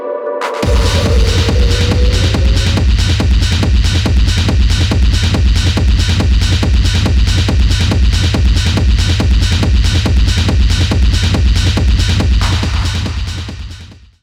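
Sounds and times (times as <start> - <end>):
rave techno music: 0.0 - 14.0.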